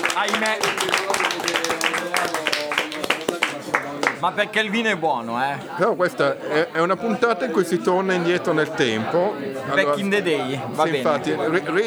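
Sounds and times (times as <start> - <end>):
laughter: 0.0 - 11.8
small group applauding: 0.0 - 11.8
voices cheering and calling out: 0.0 - 11.8
speech: 0.2 - 2.4, 4.2 - 11.8.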